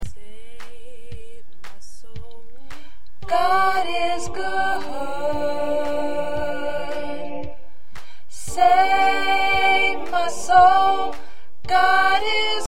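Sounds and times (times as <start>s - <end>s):
choir with soprano: 3.2s - 7.6s, 8.3s - 12.6s.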